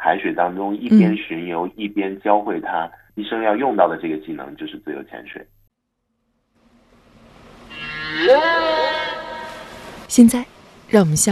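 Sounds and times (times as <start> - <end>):
speech: 0.1 - 5.6, 10.1 - 11.2
whale vocalizations underwater: 7.7 - 9.9.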